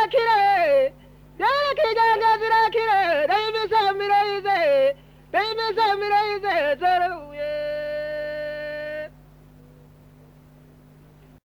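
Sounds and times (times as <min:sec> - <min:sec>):
kwishongora singing in Burundi: 0:00.0 - 0:09.2.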